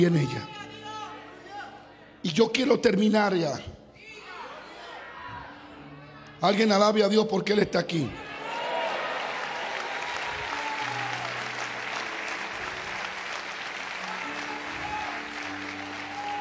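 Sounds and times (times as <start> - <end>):
speech: 0.0 - 0.6, 2.2 - 3.8, 6.4 - 8.3
audience applause: 8.3 - 16.3.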